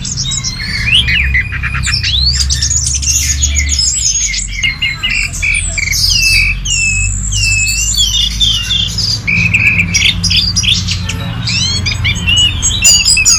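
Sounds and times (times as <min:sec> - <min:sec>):
bird singing: 0:00.0 - 0:13.3.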